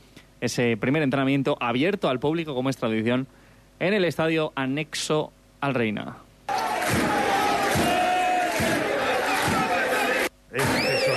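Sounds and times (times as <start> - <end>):
speech: 0.4 - 6.3
football match crowd in the Reina stadium, home of Unionistas: 6.5 - 11.1
thin whistles: 10.6 - 11.1.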